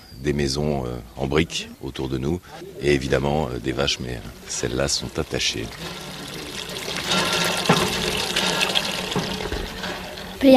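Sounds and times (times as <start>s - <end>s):
speech: 0.2s - 6.2s
water being pumped into a basin for cows: 2.6s - 10.5s.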